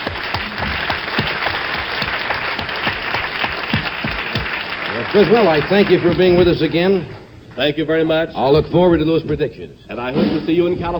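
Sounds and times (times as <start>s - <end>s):
crowd applauding: 0.0s - 7.1s
speech: 5.1s - 10.9s.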